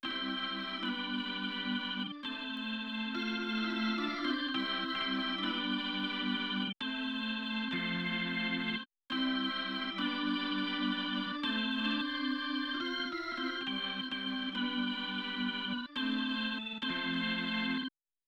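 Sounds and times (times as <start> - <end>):
organ: 0.0 - 18.0.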